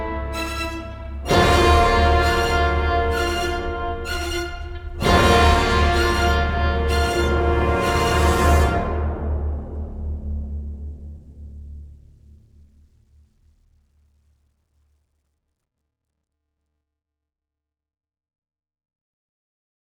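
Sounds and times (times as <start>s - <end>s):
invasion music sting: 0.0s - 9.6s.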